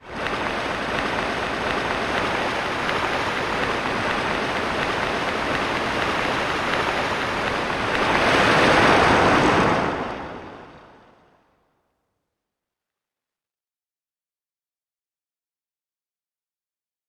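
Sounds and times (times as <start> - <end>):
sea waves on a shore: 0.0 - 11.4.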